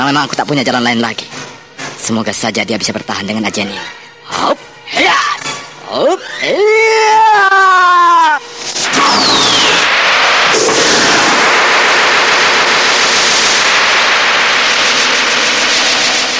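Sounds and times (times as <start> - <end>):
speech: 0.0 - 1.4, 2.0 - 5.3, 5.9 - 9.5
deafening explosion from clashing magical powers: 8.8 - 16.3.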